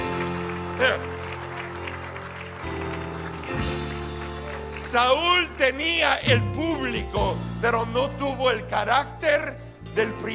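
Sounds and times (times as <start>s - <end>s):
audience applause: 0.0s - 5.5s
speech: 0.8s - 1.1s, 4.9s - 10.3s.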